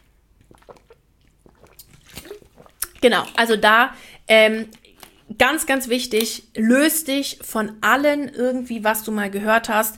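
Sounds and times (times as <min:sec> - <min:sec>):
sipping a drink of water: 0:00.0 - 0:05.4
speech: 0:03.0 - 0:04.8, 0:05.4 - 0:09.9.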